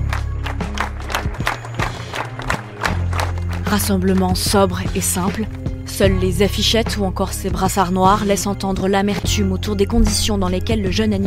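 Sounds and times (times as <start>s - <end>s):
crowd applauding at memorial gathering: 0.0s - 4.6s
speech: 3.7s - 11.2s.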